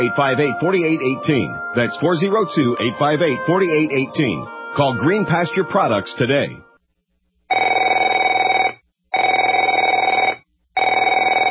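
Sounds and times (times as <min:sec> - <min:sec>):
speech: 0:00.0 - 0:06.6
telephone bell ringing: 0:07.5 - 0:11.4.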